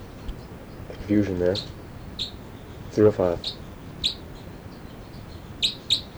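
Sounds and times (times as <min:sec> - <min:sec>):
birds chirping: 0:00.0 - 0:06.1
low steady hiss: 0:00.0 - 0:06.1
speech: 0:00.9 - 0:02.3, 0:02.9 - 0:04.2.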